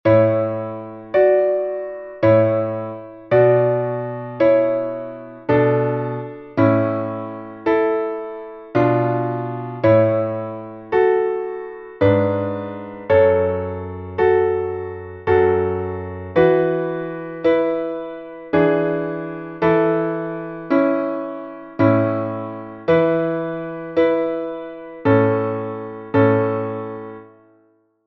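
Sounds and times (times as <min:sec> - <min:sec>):
piano: 0:00.0 - 0:28.0.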